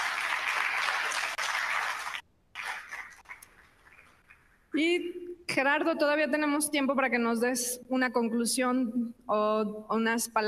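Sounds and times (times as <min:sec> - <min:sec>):
applause: 0:00.0 - 0:04.6
speech: 0:04.8 - 0:10.4.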